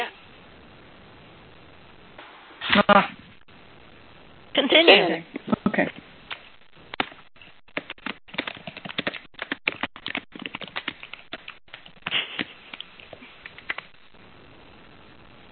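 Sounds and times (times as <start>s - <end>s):
speech: 2.8s - 3.2s, 4.7s - 6.0s
typing on a computer keyboard during an online call: 7.8s - 13.9s.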